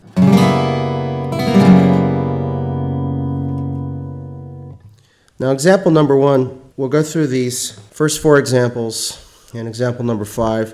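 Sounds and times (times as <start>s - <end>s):
guitar chord with added flat nine strummed: 0.0s - 4.8s
speech: 5.4s - 10.7s.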